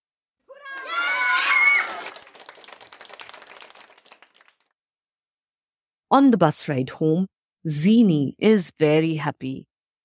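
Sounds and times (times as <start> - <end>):
group of children cheering and shouting: 0.5 - 2.2
scattered clapping: 0.7 - 4.7
speech: 6.1 - 9.7.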